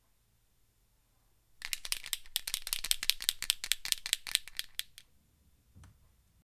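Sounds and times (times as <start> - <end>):
marker shaking: 1.6 - 5.0.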